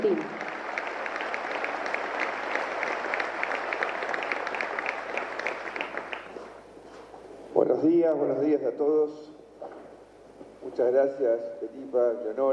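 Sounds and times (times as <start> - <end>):
speech: 0.0 - 0.4, 7.8 - 9.3, 10.8 - 12.5
large audience applause: 0.0 - 6.6.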